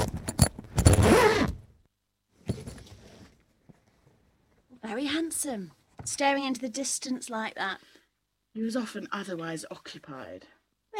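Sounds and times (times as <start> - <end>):
zipper being pulled on a bag: 0.7 - 1.6
speech: 5.0 - 7.9, 8.6 - 10.9.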